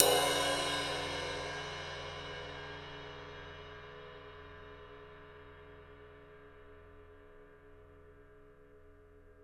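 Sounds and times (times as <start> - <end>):
EMU PX-7 drum machine ride cymbal: 0.0 - 2.7.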